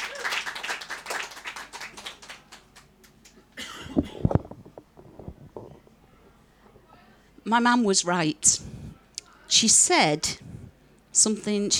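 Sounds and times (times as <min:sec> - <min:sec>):
audience applause and clapping: 0:00.0 - 0:03.3
scattered thumps: 0:03.9 - 0:05.9
speech: 0:07.5 - 0:08.3, 0:09.6 - 0:10.5, 0:11.2 - 0:11.7.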